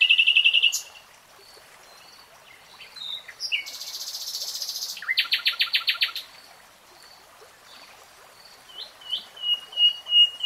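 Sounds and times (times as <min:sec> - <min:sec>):
nightingale singing varied phrases: 0:00.0 - 0:01.0, 0:02.8 - 0:06.2, 0:08.7 - 0:10.4.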